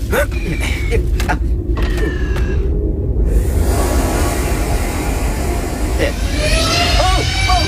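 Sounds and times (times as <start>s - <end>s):
Star Wars landspeeder ground effect vehicle starting off: 0.0s - 7.6s
thin whining tones: 2.0s - 7.6s.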